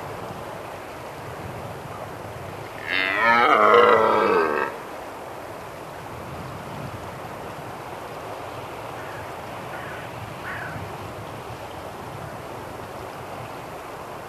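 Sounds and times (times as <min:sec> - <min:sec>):
red deer giving moaning harmonic bellows: 0:02.8 - 0:04.8.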